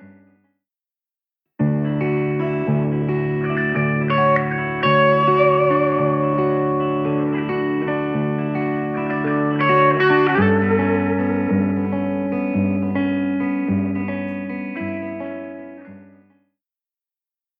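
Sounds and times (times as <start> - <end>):
vintage guitar spring reverb: 1.6 - 15.7.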